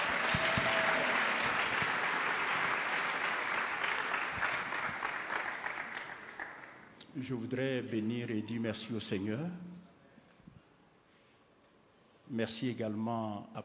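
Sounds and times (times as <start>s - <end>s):
audience applause during a church service: 0.0s - 6.9s
speech: 7.2s - 9.7s, 12.3s - 13.6s.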